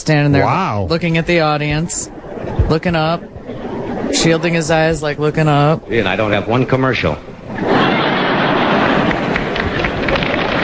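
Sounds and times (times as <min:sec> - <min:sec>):
speech: 0:00.0 - 0:03.3, 0:04.1 - 0:07.3
laughter: 0:01.9 - 0:05.1, 0:07.5 - 0:10.2
audience applause: 0:07.6 - 0:10.6.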